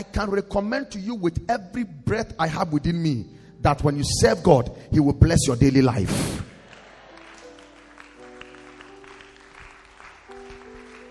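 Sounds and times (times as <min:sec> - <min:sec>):
speech: 0:00.0 - 0:06.4
audience clapping hands: 0:06.4 - 0:11.0.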